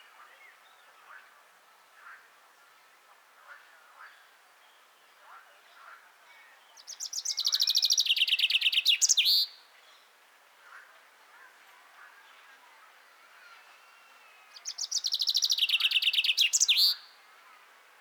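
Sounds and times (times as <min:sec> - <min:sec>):
common chaffinch song: 0:04.0 - 0:10.1, 0:11.4 - 0:17.9.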